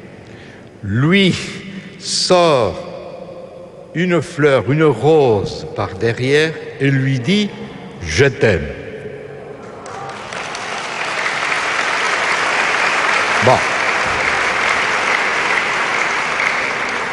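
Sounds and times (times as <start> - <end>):
speech: 0.8 - 2.9, 3.9 - 8.8, 13.5 - 13.7
room full of people applauding: 9.8 - 17.1.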